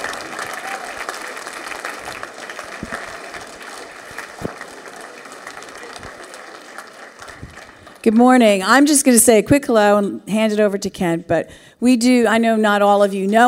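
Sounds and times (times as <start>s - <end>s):
audience applause welcoming speakers at a morning church gathering: 0.0s - 8.5s
speech: 8.0s - 13.4s.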